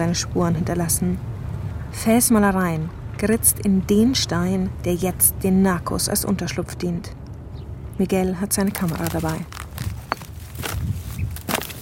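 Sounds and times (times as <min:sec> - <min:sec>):
speech: 0:00.0 - 0:01.3, 0:01.9 - 0:07.2, 0:08.0 - 0:09.6
footsteps climbing a scree-covered hill: 0:08.5 - 0:11.7.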